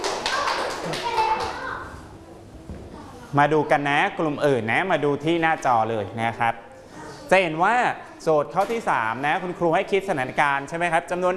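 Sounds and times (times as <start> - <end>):
class clapping: 0.0 - 1.8
speech: 3.3 - 6.7, 7.3 - 11.3.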